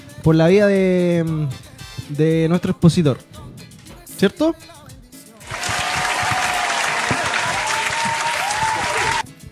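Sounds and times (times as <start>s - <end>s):
speech: 0.2s - 3.4s, 4.2s - 4.8s
audience applause: 5.4s - 9.2s.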